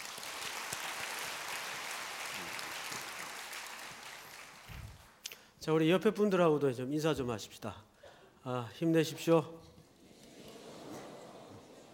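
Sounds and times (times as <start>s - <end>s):
church congregation applause: 0.0s - 5.2s
speech: 5.6s - 9.7s.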